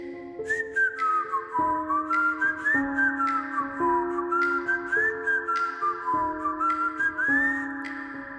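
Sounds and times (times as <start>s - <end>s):
person whistling a song: 0.4s - 8.2s.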